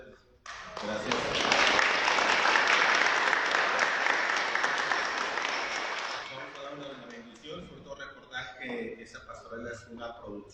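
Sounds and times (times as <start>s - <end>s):
crowd applause: 0.5s - 7.4s
speech: 9.8s - 10.5s.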